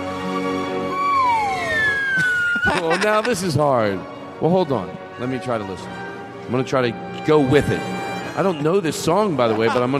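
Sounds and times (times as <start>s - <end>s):
slide whistle solo: 0.8s - 3.0s
laughter: 2.0s - 3.8s, 8.2s - 9.9s
speech: 2.7s - 9.9s.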